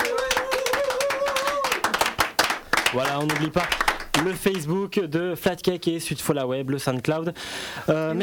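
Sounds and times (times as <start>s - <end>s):
audience applauding at a live radio concert: 0.0s - 4.7s
speech: 2.9s - 8.2s.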